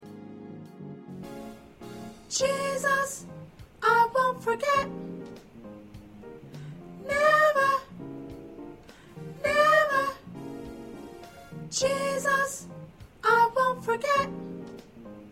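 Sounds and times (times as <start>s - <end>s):
choir with soprano: 2.3s - 5.2s, 7.0s - 8.0s, 9.2s - 10.5s, 11.7s - 14.6s.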